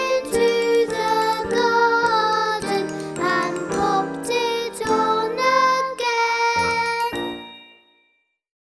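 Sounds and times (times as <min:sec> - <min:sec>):
music box melody: 0:00.0 - 0:05.5, 0:06.5 - 0:08.3.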